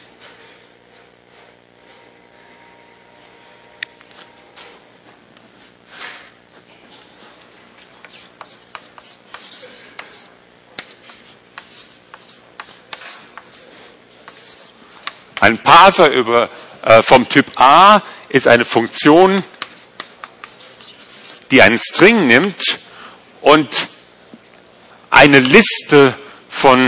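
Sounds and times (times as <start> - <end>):
chalk writing on a blackboard during a lecture: 8.0 - 15.5, 19.5 - 21.6
speech: 15.4 - 19.6, 21.5 - 22.8, 23.4 - 23.9, 25.2 - 26.8.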